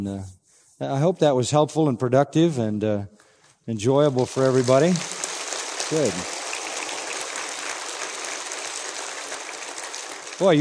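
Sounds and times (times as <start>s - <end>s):
speech: 0.0s - 5.2s, 5.9s - 6.4s, 10.4s - 10.6s
audience applause: 4.1s - 10.6s.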